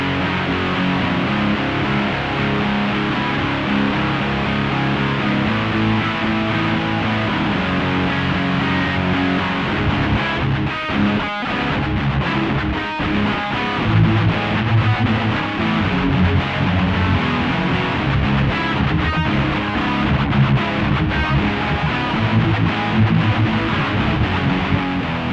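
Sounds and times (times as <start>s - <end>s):
rock guitar in surround 3D sound: 0.0s - 25.3s.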